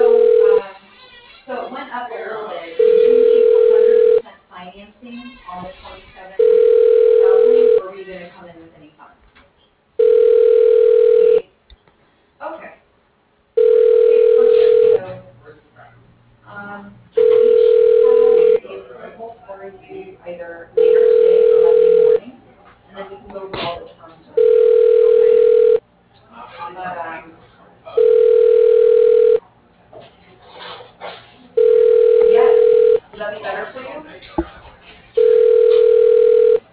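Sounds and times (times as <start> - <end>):
telephone ringing with an incoming call: 0.0 - 0.6, 2.8 - 4.2, 6.4 - 7.8, 10.0 - 11.4, 13.6 - 15.0, 17.2 - 18.6, 20.8 - 22.2, 24.4 - 25.8, 28.0 - 29.4, 31.6 - 33.0, 35.2 - 36.6
people talking: 0.0 - 9.3, 12.4 - 12.8, 13.6 - 36.6.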